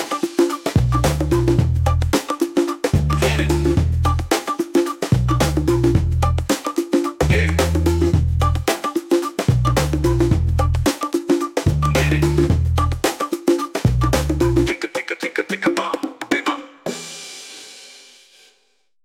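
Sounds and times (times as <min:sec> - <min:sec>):
funky free beats: 0:00.0 - 0:17.0.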